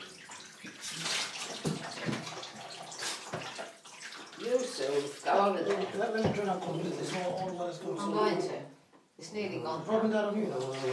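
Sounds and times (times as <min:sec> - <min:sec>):
water splashing and sloshing as a dog is washed in the tub: 0:00.0 - 0:08.0, 0:10.4 - 0:10.9
warm water running while washing a dog: 0:00.0 - 0:10.9
speech: 0:04.8 - 0:10.9.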